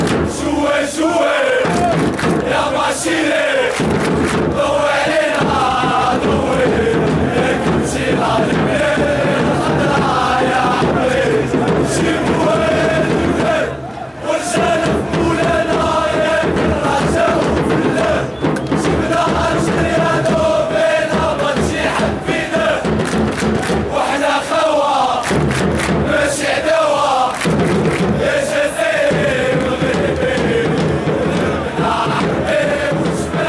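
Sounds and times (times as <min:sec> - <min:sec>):
Moroccan football fans chanting: 0:00.2 - 0:33.4.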